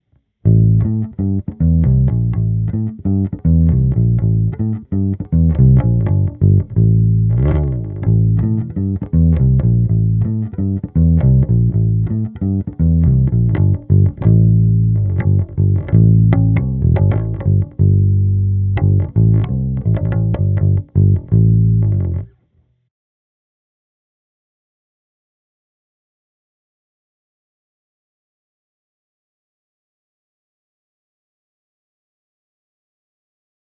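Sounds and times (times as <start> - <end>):
bass guitar with flatwound strings through a cab: 0.4 - 22.4.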